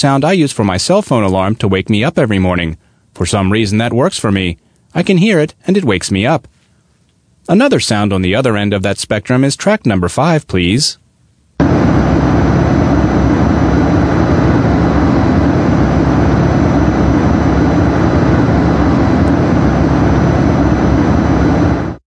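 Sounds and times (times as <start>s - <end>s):
speech: 0.0s - 6.6s, 7.5s - 11.0s
mechanical hum like refrigerator or air conditioner: 11.0s - 22.0s.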